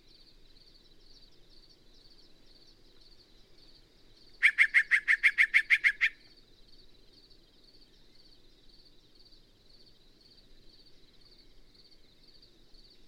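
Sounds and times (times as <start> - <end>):
Yellow-breasted Chat calling: 4.4 - 6.3.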